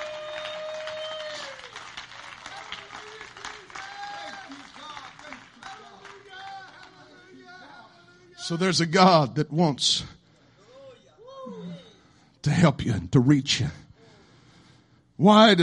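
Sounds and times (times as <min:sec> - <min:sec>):
audience clapping hands in praise: 0:00.0 - 0:07.5
speech: 0:08.5 - 0:10.2, 0:12.6 - 0:13.8, 0:15.2 - 0:15.6.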